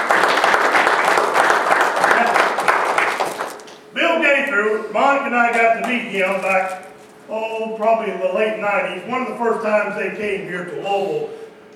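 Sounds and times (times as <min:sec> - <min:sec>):
audience applause: 0:00.0 - 0:03.7
speech: 0:04.7 - 0:11.4.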